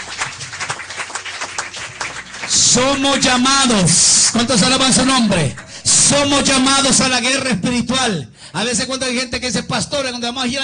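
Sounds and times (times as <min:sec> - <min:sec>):
church congregation applauding: 0:00.0 - 0:07.0
speech: 0:02.5 - 0:10.6.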